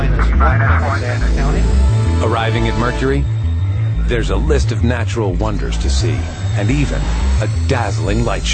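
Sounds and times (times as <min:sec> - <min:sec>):
engine starting up with deep droning hum: 0:00.0 - 0:08.5
wavering mid-pitched whine: 0:00.0 - 0:08.5
speech: 0:00.4 - 0:03.4, 0:04.1 - 0:08.5.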